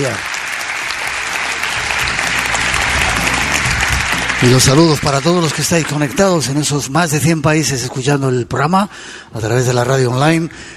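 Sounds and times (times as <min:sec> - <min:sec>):
speech: 0:00.0 - 0:00.3, 0:04.4 - 0:10.7
theatre audience applause: 0:00.0 - 0:06.7.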